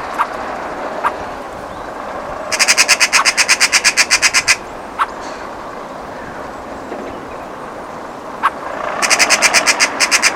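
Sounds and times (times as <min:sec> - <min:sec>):
Eurasian magpie Pica pica harsh chack calls: 0:00.1 - 0:01.3, 0:02.5 - 0:05.5, 0:08.4 - 0:10.3.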